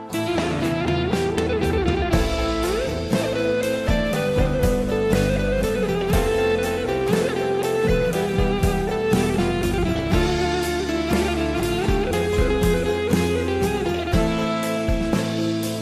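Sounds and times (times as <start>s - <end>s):
electro music: 0.0s - 15.8s.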